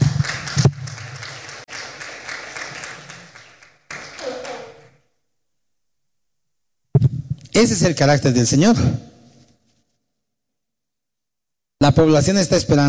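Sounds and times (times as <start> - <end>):
audience applause: 0.0 - 5.0
speech: 7.6 - 9.1, 11.8 - 12.8.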